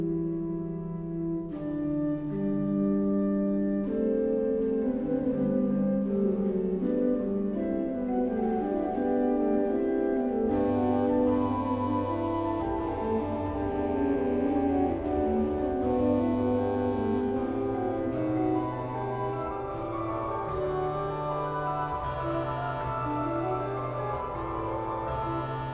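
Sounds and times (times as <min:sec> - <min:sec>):
organ playing a chorale hymn: 0:00.2 - 0:25.7.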